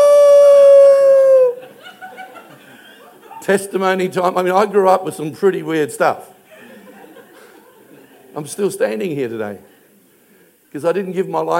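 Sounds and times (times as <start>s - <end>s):
voice imitating an ambulance siren: 0.0s - 1.6s
laughter: 1.2s - 3.4s, 6.5s - 8.4s
speech: 3.5s - 6.3s, 8.4s - 9.7s, 10.7s - 11.5s.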